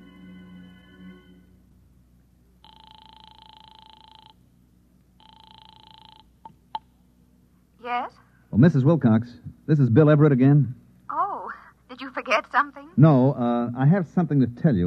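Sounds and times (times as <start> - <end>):
telephone dialing tones: 2.6 - 4.4, 5.2 - 6.6
speech: 7.9 - 10.8, 12.4 - 14.8.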